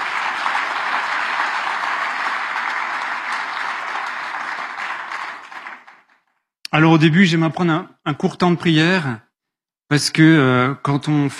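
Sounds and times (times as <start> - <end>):
audience applause: 0.0 - 6.4
speech: 6.8 - 9.2, 9.9 - 11.3.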